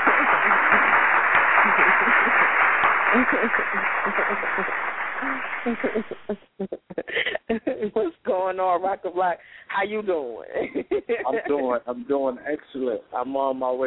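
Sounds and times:
round of applause: 0.0 - 6.4
laughter: 0.0 - 8.3, 10.4 - 12.3
speech: 3.1 - 13.8.

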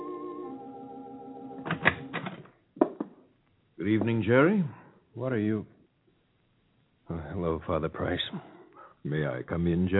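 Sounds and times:
humming musical tone: 0.0 - 1.7
speech: 3.8 - 5.7, 7.4 - 9.9.

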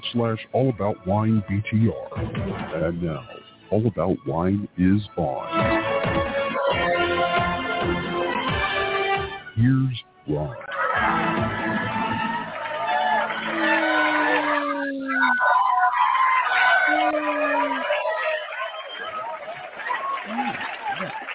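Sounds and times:
speech: 0.1 - 8.0, 9.6 - 10.7
crowd cheering: 5.7 - 9.0, 10.4 - 21.3.

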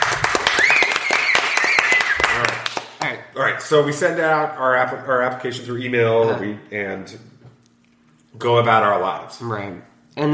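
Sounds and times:
audience clapping: 0.0 - 3.2
speech: 3.6 - 7.3, 8.4 - 10.3.

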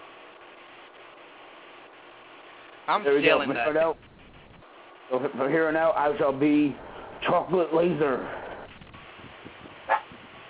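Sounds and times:
speech: 2.9 - 4.1, 5.1 - 8.4
dog barking: 9.9 - 10.1.

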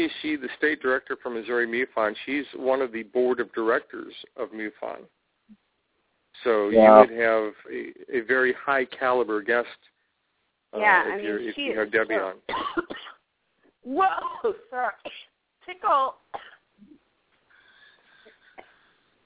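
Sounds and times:
speech: 0.0 - 5.6, 6.4 - 9.9, 10.7 - 13.1, 13.8 - 16.9
coughing fit from a tickle in the throat: 12.5 - 13.2
strained, voiced gasps: 17.5 - 19.2.

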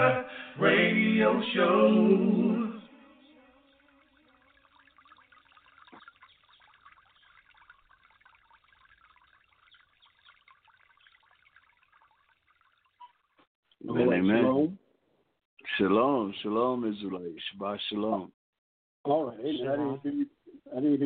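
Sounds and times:
speech: 0.1 - 2.6, 15.8 - 18.4, 19.1 - 21.0
water trickling: 2.9 - 13.5.

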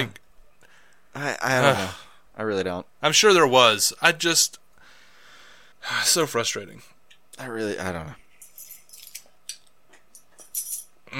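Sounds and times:
speech: 0.0 - 0.2, 1.2 - 4.6, 5.8 - 8.2
dog collar tags jingling: 8.4 - 9.3, 10.1 - 10.9.

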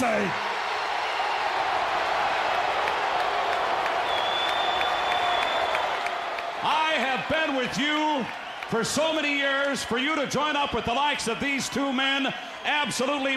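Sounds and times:
speech: 0.0 - 0.5, 7.3 - 13.3
large wrestling arena crowd cheering: 0.0 - 13.3
scattered clapping: 1.7 - 10.9
high whistle: 4.0 - 6.1.

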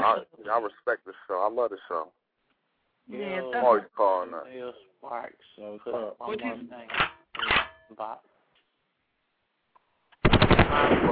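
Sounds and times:
speech: 0.1 - 2.2, 3.1 - 8.3, 10.7 - 11.1
rapid machine-gun fire sound effect: 10.2 - 11.1.

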